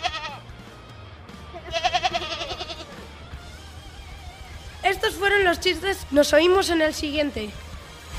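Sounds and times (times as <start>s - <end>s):
goat bleating: 0.0s - 0.5s, 1.5s - 3.1s
speech: 5.0s - 7.6s.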